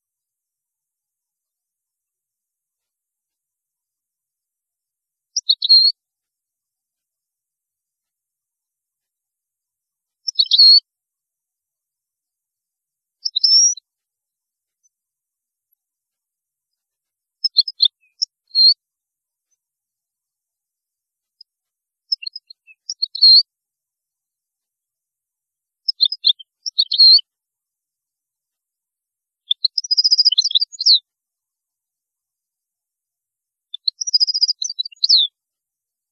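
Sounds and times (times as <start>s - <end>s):
European goldfinch song: 5.4s - 5.9s, 10.2s - 10.8s, 13.2s - 13.8s, 17.4s - 18.8s, 22.1s - 23.4s, 25.9s - 27.2s, 29.5s - 31.0s, 33.8s - 35.3s.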